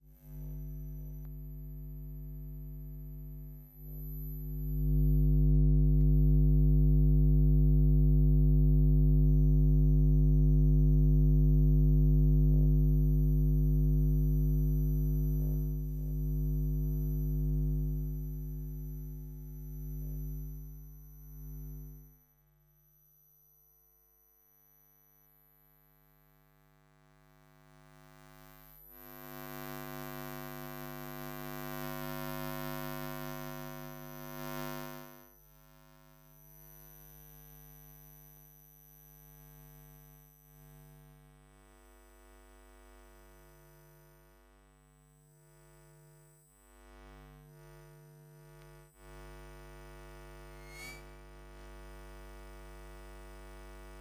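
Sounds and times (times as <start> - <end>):
electromagnetic field hum: 0.0 - 53.9.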